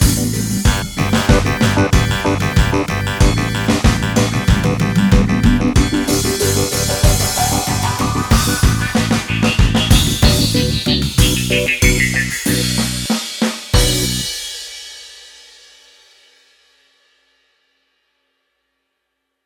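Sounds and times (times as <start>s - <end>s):
forest dub music: 0.0s - 13.2s, 13.8s - 14.3s.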